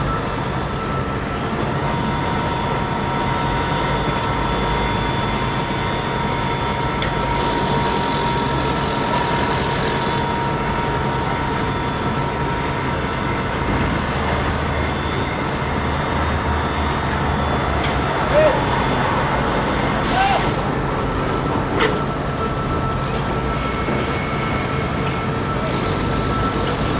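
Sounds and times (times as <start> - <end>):
construction site noise: 0.0 - 26.9.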